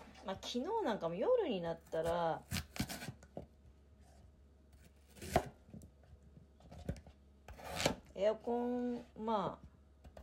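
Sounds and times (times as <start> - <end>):
speech: 0.2 - 2.6, 8.2 - 9.7
knife chopping on cutting board making potato salad: 5.2 - 5.6, 7.5 - 8.0.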